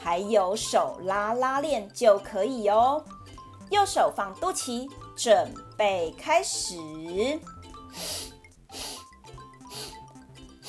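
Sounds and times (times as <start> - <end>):
speech: 0.0 - 8.9
soft music: 0.0 - 10.6
slow deep breathing in through nose: 7.8 - 10.6.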